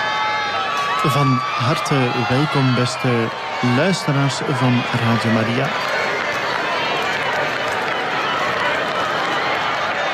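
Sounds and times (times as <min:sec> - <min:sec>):
crowd noise in St. Peter's Square in the Vatican: 0:00.0 - 0:10.1
speech: 0:01.0 - 0:05.9.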